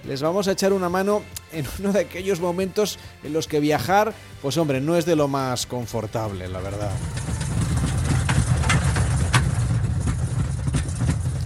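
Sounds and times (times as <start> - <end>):
speech: 0.1 - 7.4
airplane flying through turbulence: 6.6 - 11.4.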